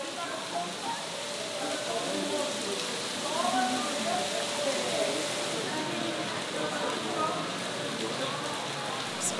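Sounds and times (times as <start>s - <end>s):
faint murmur of voices: 0.0s - 9.3s
heavy rain: 0.0s - 9.3s.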